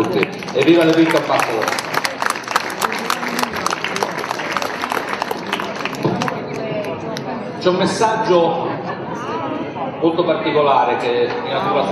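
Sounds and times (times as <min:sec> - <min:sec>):
speech: 0:00.0 - 0:01.9, 0:07.6 - 0:08.7, 0:10.0 - 0:11.9
crowd applauding: 0:00.0 - 0:07.3.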